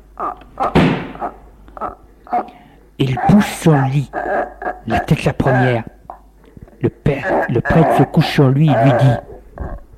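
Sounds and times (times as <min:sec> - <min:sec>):
speech: 0:00.2 - 0:05.9, 0:06.8 - 0:09.3
door kicked shut: 0:00.7 - 0:01.2.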